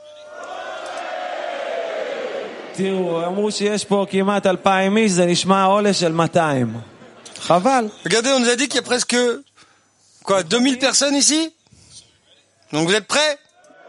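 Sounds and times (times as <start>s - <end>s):
crowd shouting together: 0.3s - 3.5s
speech: 2.8s - 9.5s, 10.2s - 11.6s, 12.7s - 13.4s.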